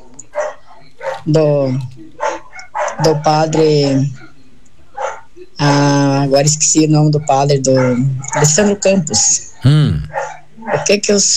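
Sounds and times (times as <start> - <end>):
dogs barking: 0.0 - 5.4, 6.9 - 9.0, 10.0 - 11.1
speech: 1.2 - 1.9, 3.0 - 4.2, 5.6 - 9.9, 10.7 - 11.3.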